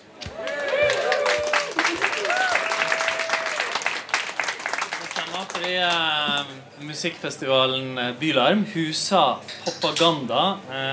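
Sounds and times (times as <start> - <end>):
audience cheering and whoops: 0.2 - 3.9
live audience applauding: 0.2 - 6.1
speech: 5.7 - 10.9.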